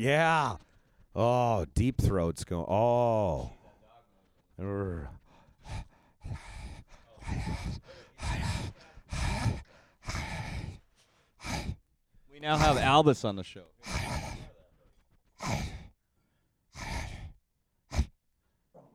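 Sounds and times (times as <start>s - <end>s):
speech: 0.0s - 3.6s, 4.6s - 6.5s, 12.4s - 14.4s, 15.4s - 15.8s
dog sniffing at microphone: 4.2s - 11.8s, 12.6s - 13.0s, 13.8s - 15.9s, 16.8s - 18.1s
dog growling at microphone: 4.6s - 11.8s, 12.6s - 12.9s, 13.8s - 14.6s, 15.4s - 15.9s, 16.8s - 18.2s.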